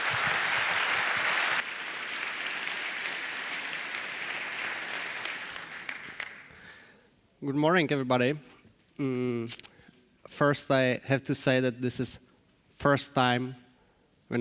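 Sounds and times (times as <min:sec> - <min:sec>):
audience applause: 0:00.0 - 0:06.8
speech: 0:07.4 - 0:09.7, 0:10.3 - 0:12.2, 0:12.8 - 0:13.6.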